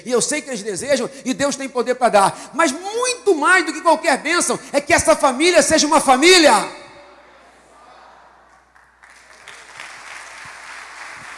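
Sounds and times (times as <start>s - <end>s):
speech: 0.0s - 6.8s
audience applause: 8.7s - 11.3s.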